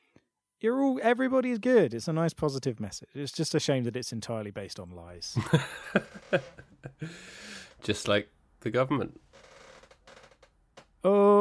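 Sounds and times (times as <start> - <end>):
speech: 0.6 - 9.2, 11.0 - 11.3
laughter: 5.4 - 7.3
creaky chair creaking: 5.9 - 6.9, 9.2 - 11.0.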